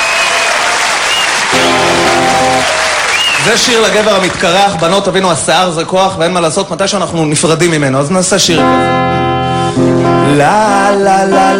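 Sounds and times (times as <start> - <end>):
audience applause: 0.0 - 5.0
speech: 3.5 - 9.2, 9.8 - 11.5.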